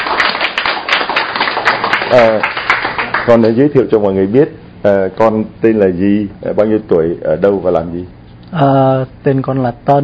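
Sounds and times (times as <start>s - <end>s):
audience applause: 0.0s - 3.6s
speech: 2.1s - 2.6s, 3.2s - 10.0s.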